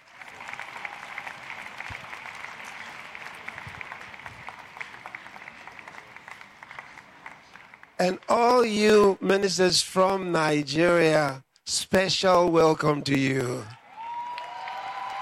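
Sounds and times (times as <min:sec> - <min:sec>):
religious gathering audience applauding: 0:00.0 - 0:09.1, 0:13.2 - 0:15.1
speech: 0:08.0 - 0:13.8.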